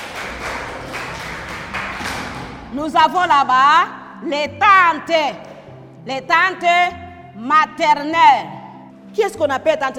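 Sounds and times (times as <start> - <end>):
group clapping during a lesson on family terms: 0.0 - 2.8
speech: 2.7 - 9.9.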